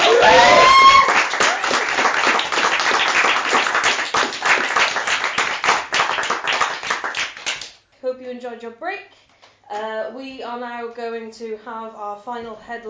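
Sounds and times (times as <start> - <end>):
audience applause and cheering: 0.0 - 7.6
speech: 8.5 - 12.8.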